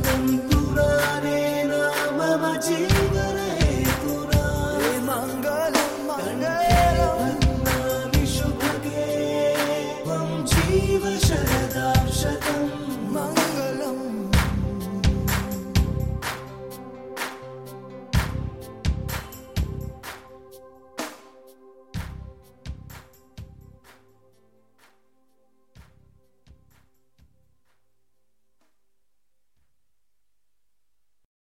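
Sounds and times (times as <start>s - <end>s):
Hindi song: 0.0s - 22.9s.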